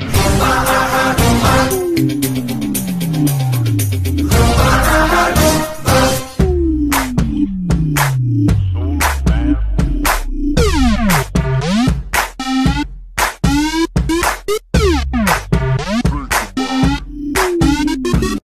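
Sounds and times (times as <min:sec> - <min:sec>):
ringtone background music: 0:00.1 - 0:18.4.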